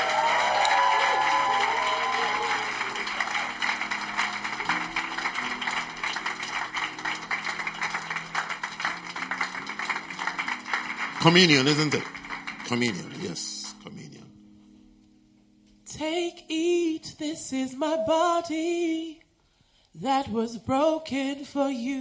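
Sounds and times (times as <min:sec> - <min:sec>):
audience applauding: 0:00.0 - 0:13.8
speech: 0:11.2 - 0:12.1, 0:12.7 - 0:13.6, 0:17.5 - 0:19.2, 0:20.0 - 0:21.9.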